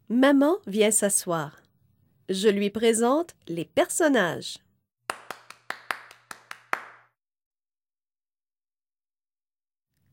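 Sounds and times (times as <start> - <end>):
speech: 0.1 - 1.6, 2.3 - 4.6
hands clapping: 5.1 - 7.2.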